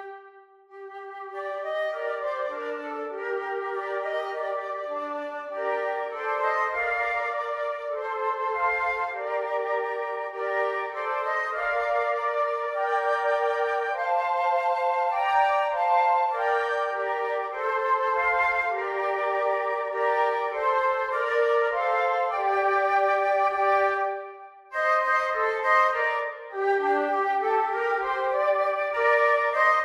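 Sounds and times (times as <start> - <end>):
flute trio playing: 0.0 - 29.8.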